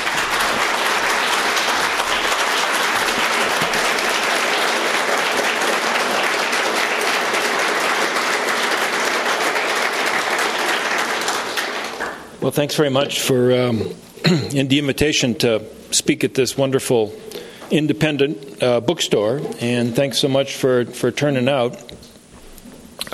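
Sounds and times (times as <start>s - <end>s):
bookstore audience applause welcoming author Andrew Bacevich: 0.0s - 12.4s
speech: 12.4s - 22.0s.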